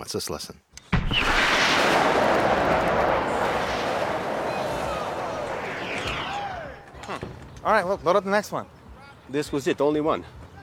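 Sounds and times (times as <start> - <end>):
speech: 0.0 - 2.4, 7.6 - 10.4
rocket explosion in a comedy film scene: 1.0 - 6.9.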